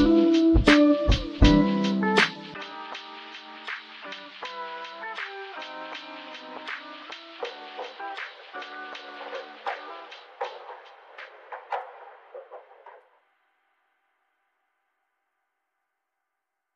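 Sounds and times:
slow lofi type beat: 0.0s - 12.6s.

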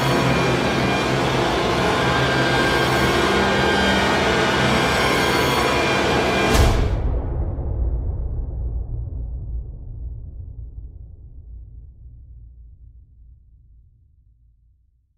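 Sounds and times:
scary horror orchestral music: 0.0s - 8.7s.

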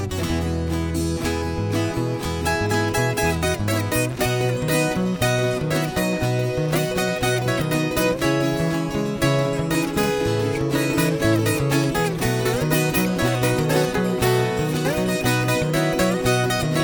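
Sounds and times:
viola rasqueado strumming in Rasquiado Cuiabano style: 0.0s - 16.8s.

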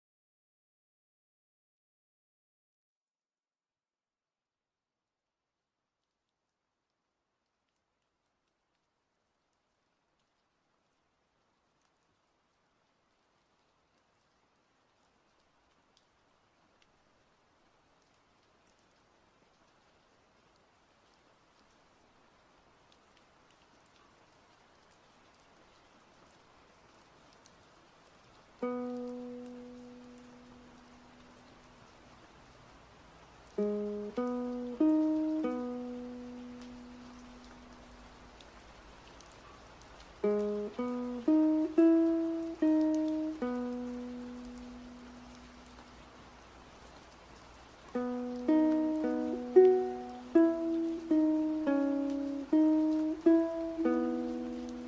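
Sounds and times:
rain at Dongmak Beach: 6.0s - 54.8s
ukulele at Dongmak Beach: 28.6s - 31.0s, 33.6s - 37.9s, 40.2s - 45.7s, 47.9s - 54.8s.

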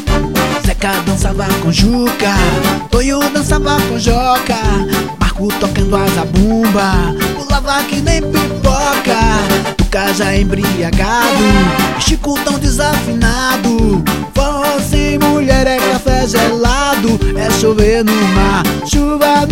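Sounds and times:
forro music: 0.0s - 19.5s.

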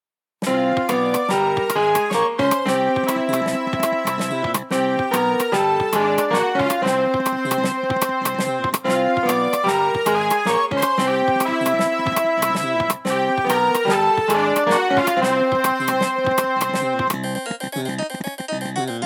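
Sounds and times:
jazz music: 0.4s - 19.0s.

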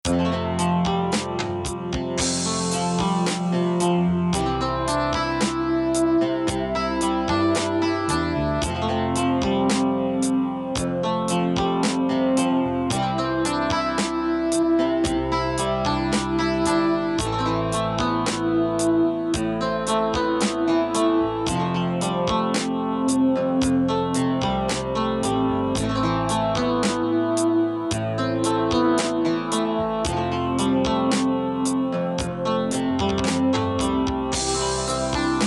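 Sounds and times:
instrumental music: 0.0s - 35.4s.

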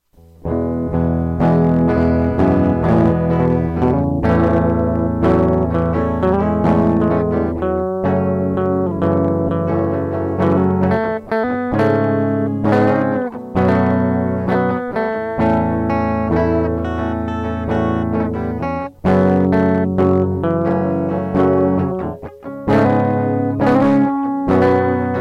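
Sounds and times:
bass guitar solo: 0.4s - 25.2s.

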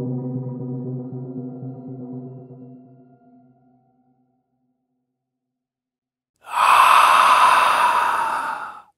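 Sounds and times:
scary horror sound effects: 6.5s - 8.8s.

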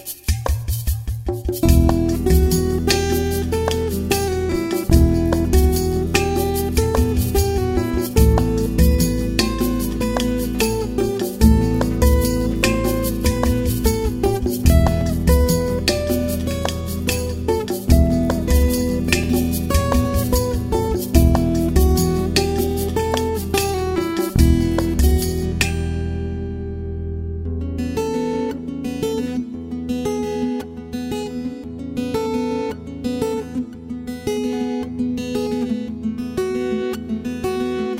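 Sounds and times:
guitars: 0.5s - 37.9s.

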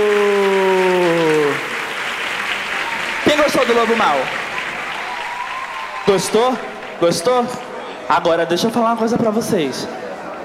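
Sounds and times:
audience applause: 0.0s - 8.3s
speech: 3.5s - 4.4s, 6.0s - 10.0s.

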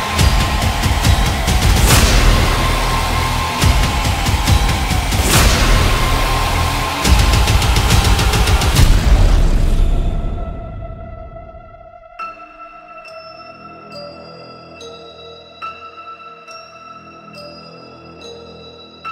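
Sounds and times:
epic intense horror trailer music: 0.0s - 13.1s.

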